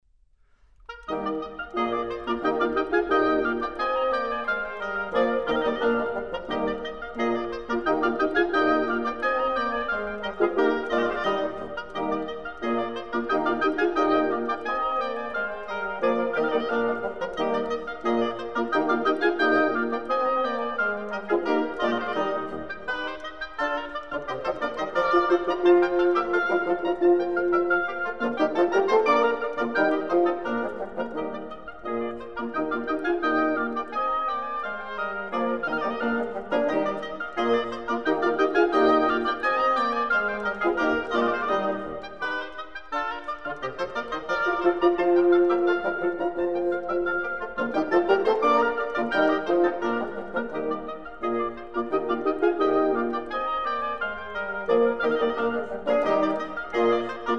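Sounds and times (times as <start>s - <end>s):
fast classical divertimento in E flat: 0.4s - 57.3s.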